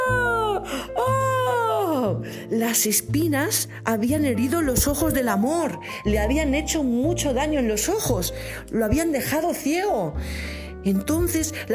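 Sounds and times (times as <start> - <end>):
person imitating a painful scream with drawn-out wails: 0.0 - 2.2
speech: 2.5 - 11.7.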